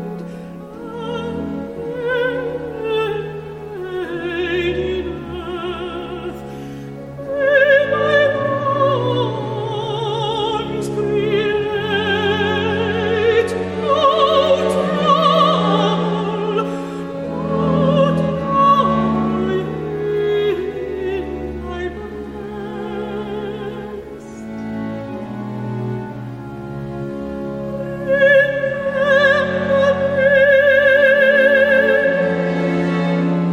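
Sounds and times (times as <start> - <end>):
baroque opera aria: 0.0 - 33.5.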